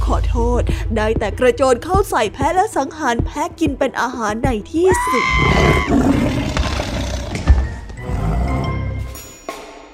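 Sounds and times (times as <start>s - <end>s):
speech: 0.1s - 6.1s
lion roaring: 4.9s - 9.0s.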